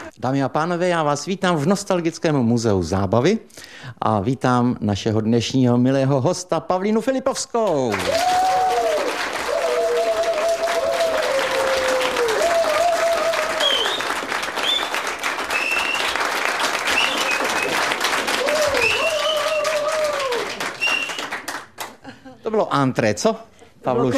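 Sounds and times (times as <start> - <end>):
speech: 0.2 - 8.4, 22.8 - 24.1
audience applause at an entertainment show: 7.9 - 22.0.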